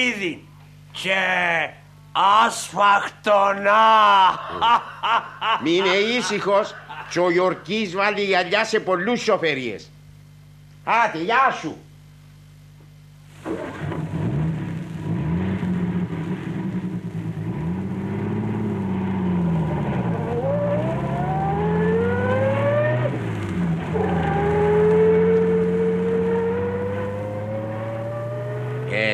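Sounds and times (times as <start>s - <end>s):
speech: 0.0s - 10.0s, 10.9s - 11.9s, 13.4s - 13.8s
laughter: 3.8s - 7.9s
car engine revving through gears: 13.4s - 29.1s.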